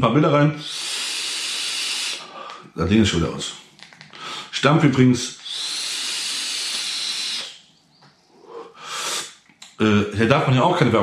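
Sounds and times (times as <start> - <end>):
speech: 0.0 - 0.8, 2.8 - 3.6, 4.5 - 5.4, 9.8 - 11.0
e-liquid vapor exhaled: 0.6 - 2.7, 5.3 - 7.6, 8.4 - 9.4.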